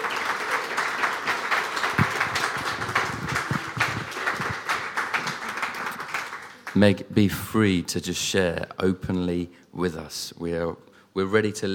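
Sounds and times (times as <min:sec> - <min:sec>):
audience applause: 0:00.0 - 0:06.8
speech: 0:06.8 - 0:11.7.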